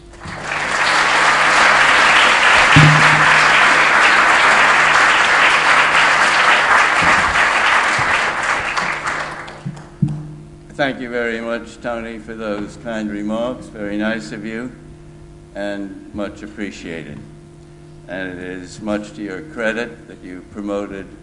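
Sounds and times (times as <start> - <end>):
audience applauding to welcome a speaker at an LSE lecture: 0.0 - 10.0
speech: 10.8 - 14.9, 15.6 - 17.4, 18.1 - 21.2.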